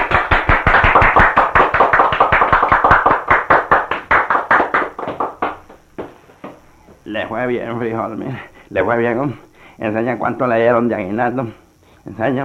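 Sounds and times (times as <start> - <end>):
audience applause: 0.0 - 5.8
speech: 7.2 - 12.4.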